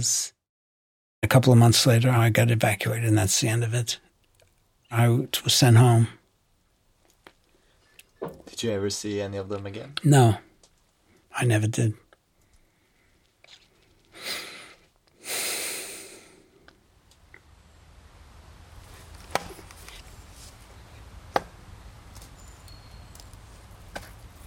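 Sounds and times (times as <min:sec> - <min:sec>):
speech: 0:00.0 - 0:00.4, 0:01.2 - 0:04.1, 0:04.9 - 0:06.2, 0:08.2 - 0:10.5, 0:11.4 - 0:12.0
wet wood being chopped: 0:19.3 - 0:19.6, 0:21.3 - 0:21.6.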